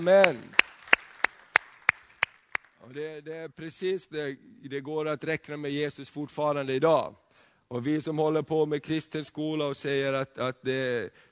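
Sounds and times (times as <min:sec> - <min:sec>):
speech: 0:00.0 - 0:00.5, 0:02.9 - 0:11.3
person clapping: 0:00.0 - 0:02.7.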